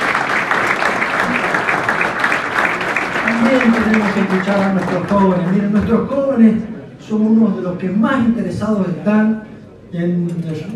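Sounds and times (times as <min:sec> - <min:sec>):
audience applause: 0:00.0 - 0:05.7
speech: 0:03.5 - 0:10.7.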